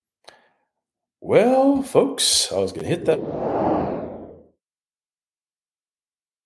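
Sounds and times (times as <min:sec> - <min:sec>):
speech: 0:01.2 - 0:03.6
whoosh sound effect opening a show intro: 0:02.9 - 0:04.5.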